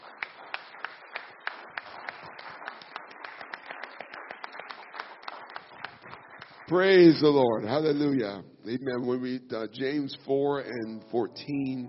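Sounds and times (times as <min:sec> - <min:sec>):
audience hand clapping in appreciation: 0:00.0 - 0:07.4
speech: 0:06.7 - 0:11.8.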